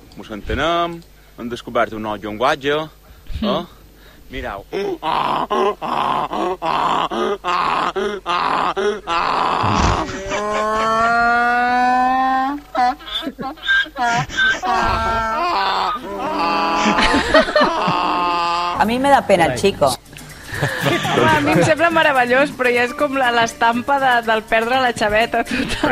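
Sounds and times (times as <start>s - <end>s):
speech: 0.2s - 11.8s, 13.3s - 25.8s
person imitating donkey braying: 4.7s - 19.0s
laughter: 7.4s - 18.7s, 20.3s - 22.0s, 25.4s - 25.8s.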